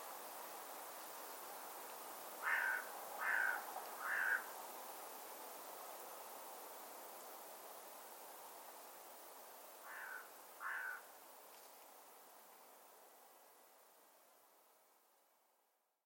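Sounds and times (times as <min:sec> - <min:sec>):
bird cawing: 0:02.4 - 0:04.5, 0:09.8 - 0:11.1.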